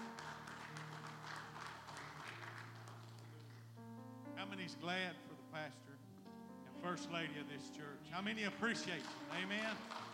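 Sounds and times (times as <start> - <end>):
hand clapping: 0.0 - 3.7, 8.7 - 10.1
speech: 4.4 - 6.0, 6.8 - 10.0.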